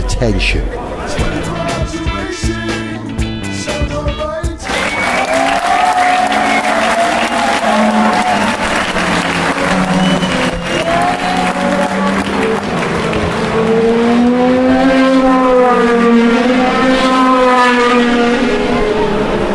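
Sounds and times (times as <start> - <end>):
crowd noise: 0.0 - 14.2
race car engines passing on a warm-up lap: 4.7 - 19.5.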